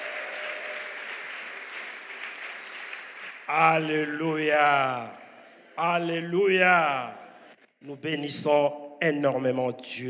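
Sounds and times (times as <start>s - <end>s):
church congregation applauding during a celebration service: 0.0s - 6.1s
speech: 3.5s - 5.2s, 5.8s - 7.2s, 7.8s - 10.0s.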